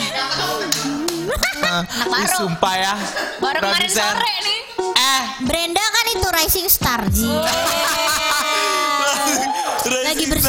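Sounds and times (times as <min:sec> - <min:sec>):
laughter: 0:00.0 - 0:03.7, 0:07.1 - 0:10.4
hand clapping: 0:00.7 - 0:01.6
speech: 0:01.3 - 0:08.4, 0:09.2 - 0:10.4.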